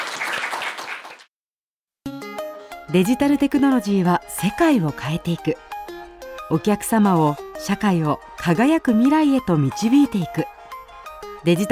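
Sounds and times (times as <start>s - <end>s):
audience applause as an onstage talk closes: 0.0s - 1.3s
music: 2.1s - 11.6s
speech: 2.9s - 5.7s, 6.5s - 10.6s, 11.4s - 11.6s.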